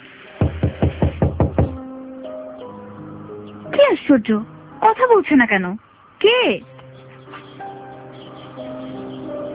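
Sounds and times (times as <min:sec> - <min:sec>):
knocks on a door: 0:00.4 - 0:01.8
speech: 0:04.1 - 0:06.7.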